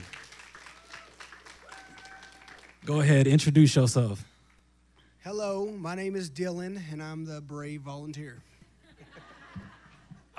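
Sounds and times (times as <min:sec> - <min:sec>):
audience clapping: 0:00.0 - 0:03.5
speech: 0:02.9 - 0:04.3, 0:05.7 - 0:08.5
laughter: 0:08.6 - 0:10.3.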